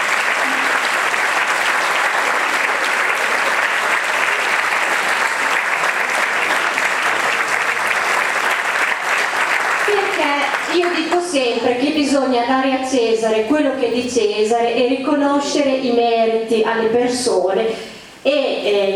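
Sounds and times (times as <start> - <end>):
audience applause: 0.0 - 11.3
speech: 11.4 - 18.9.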